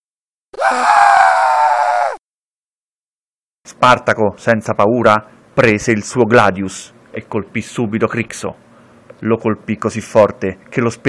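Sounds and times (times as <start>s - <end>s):
man screaming: 0.5s - 2.2s
speech: 3.7s - 8.6s, 9.2s - 11.0s.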